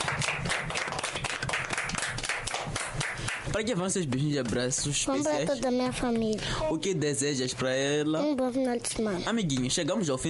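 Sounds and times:
people clapping hands: 0:00.0 - 0:05.0
speech: 0:03.6 - 0:10.2.

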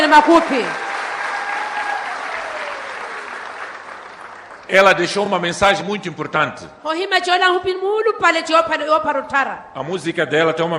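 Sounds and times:
audience applause: 0:00.0 - 0:05.4
speech: 0:00.1 - 0:00.8, 0:04.7 - 0:10.7.

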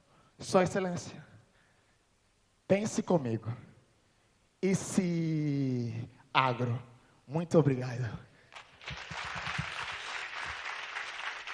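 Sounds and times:
speech: 0:00.4 - 0:01.3, 0:02.7 - 0:03.7, 0:04.6 - 0:08.3
audience applause: 0:08.6 - 0:11.5.

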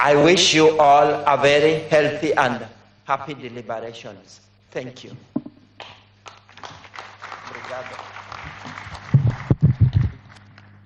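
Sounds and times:
speech: 0:00.0 - 0:05.9, 0:07.7 - 0:09.0
audience applause: 0:06.2 - 0:10.8.

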